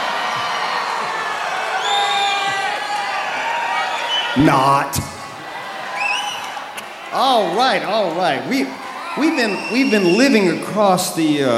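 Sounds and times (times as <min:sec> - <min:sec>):
large crowd cheering: 0:00.0 - 0:11.5
whoops and shrill shouts from crowd: 0:01.6 - 0:05.0, 0:05.9 - 0:06.6, 0:09.2 - 0:10.6
speech: 0:04.4 - 0:05.2, 0:07.1 - 0:11.5.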